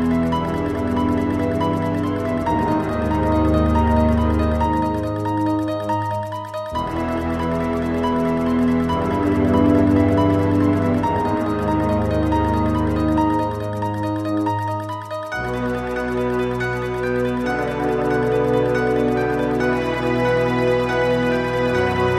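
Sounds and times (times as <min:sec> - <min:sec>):
instrumental spooky theme music: 0:00.0 - 0:22.1.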